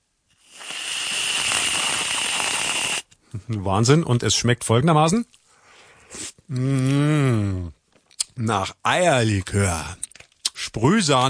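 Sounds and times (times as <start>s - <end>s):
whipped cream sprayed from a can: 0.4s - 3.1s
speech: 3.3s - 5.4s, 6.1s - 7.8s, 8.4s - 10.0s, 10.8s - 11.2s.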